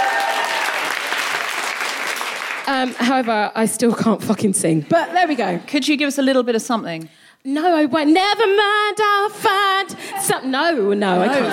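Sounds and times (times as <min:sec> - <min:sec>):
applause: 0:00.0 - 0:03.4
speech: 0:02.7 - 0:11.5
laughter: 0:11.0 - 0:11.5.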